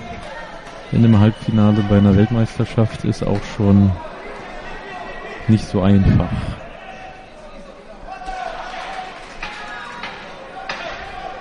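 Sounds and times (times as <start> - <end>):
spectators cheering and shouting encouragement: 0.0 - 11.3
speech: 0.3 - 4.4, 5.5 - 6.6.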